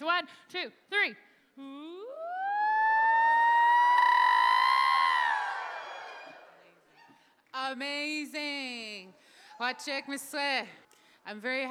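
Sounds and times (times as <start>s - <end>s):
speech: 0.2s - 2.2s, 7.6s - 11.6s
crowd of voices rising to a collective scream: 2.3s - 6.5s.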